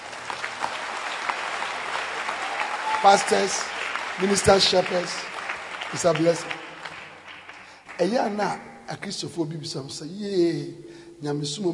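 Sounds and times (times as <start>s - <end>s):
audience clapping hands: 0.0s - 8.6s
speech: 3.0s - 5.3s, 5.9s - 6.6s, 8.0s - 11.7s.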